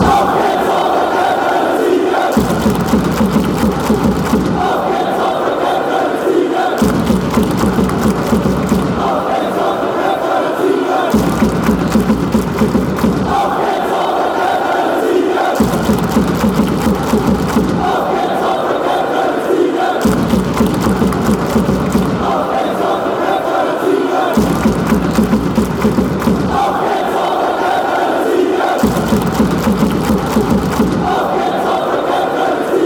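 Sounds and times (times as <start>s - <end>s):
fans chanting: 0.0s - 32.8s.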